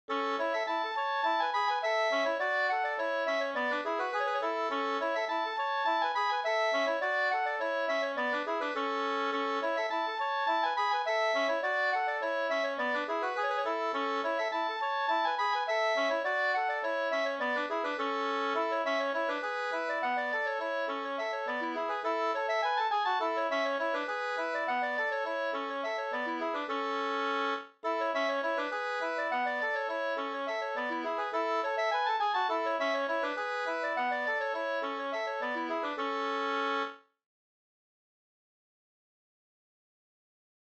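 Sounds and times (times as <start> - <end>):
two-part brannvinspolska tune: 0.1 - 37.0.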